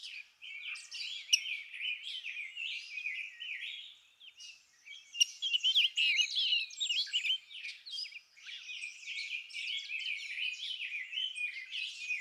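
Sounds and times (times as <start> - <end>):
rose-breasted grosbeak singing warbled phrases: 0.0 - 12.1.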